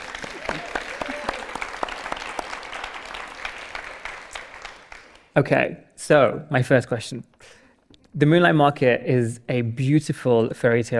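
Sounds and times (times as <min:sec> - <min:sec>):
audience applause: 0:00.0 - 0:05.3
speech: 0:05.4 - 0:07.6, 0:08.2 - 0:10.9.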